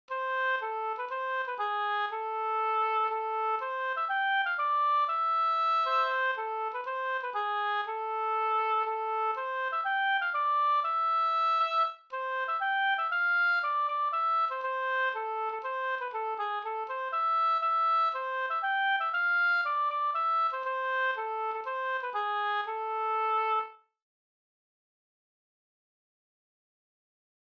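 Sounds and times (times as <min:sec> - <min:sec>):
polska folk dance tune: 0:00.1 - 0:23.7.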